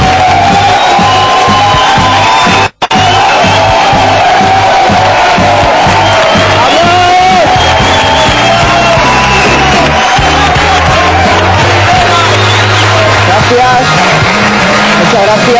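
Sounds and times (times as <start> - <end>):
audience applause: 0.0 - 15.5.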